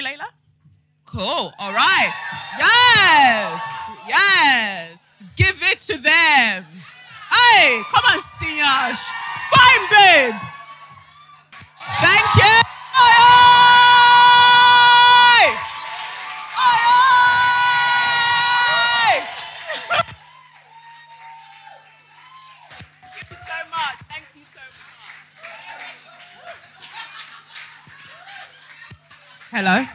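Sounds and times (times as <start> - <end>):
speech: 1.2 - 10.5, 29.6 - 29.9
audience clapping: 1.8 - 4.1, 7.4 - 29.9
laughter: 19.6 - 20.1, 25.8 - 29.9.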